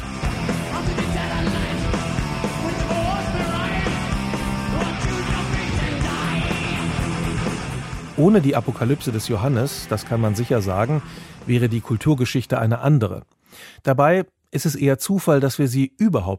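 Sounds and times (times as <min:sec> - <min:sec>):
harsh shouted vocals: 0:00.0 - 0:12.2
heavy metal distorted guitars: 0:00.0 - 0:12.5
speech: 0:08.2 - 0:16.3.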